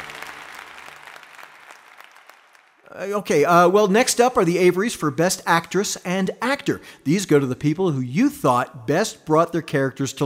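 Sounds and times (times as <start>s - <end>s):
crowd cheering: 0.0s - 3.1s
speech: 2.9s - 10.2s.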